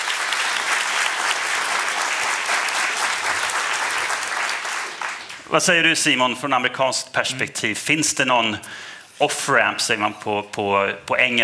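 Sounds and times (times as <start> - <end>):
audience applause: 0.0 - 5.5
speech: 5.5 - 11.4.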